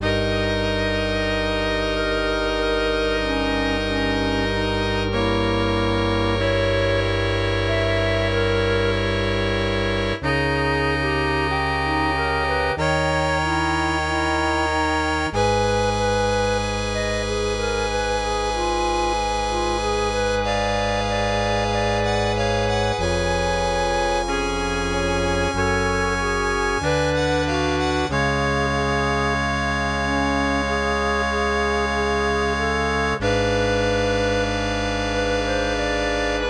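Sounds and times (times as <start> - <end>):
MIDI music: 0.0 - 36.4.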